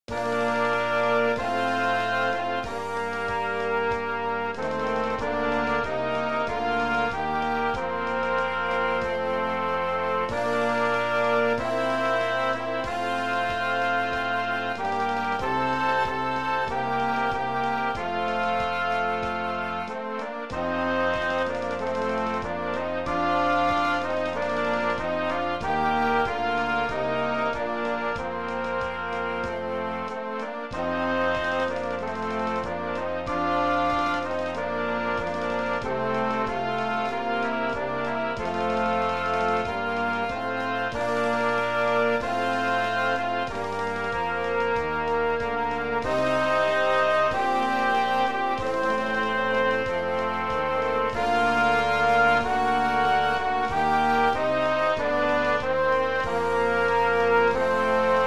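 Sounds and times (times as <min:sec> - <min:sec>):
national anthem music playback: 0:00.0 - 0:58.2.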